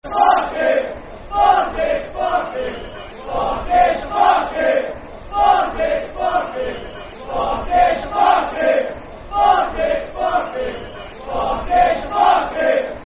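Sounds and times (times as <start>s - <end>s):
football chant, soccer song: 0.0s - 13.0s.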